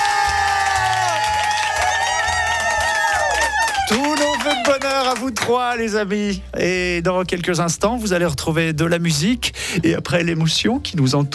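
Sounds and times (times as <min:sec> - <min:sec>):
audience applause and cheering: 0:00.0 - 0:05.5
speech: 0:05.1 - 0:11.3.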